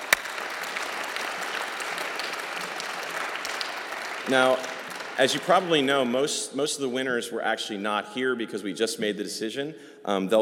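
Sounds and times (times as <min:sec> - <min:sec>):
audience applause: 0:00.0 - 0:06.2
speech: 0:04.2 - 0:10.3.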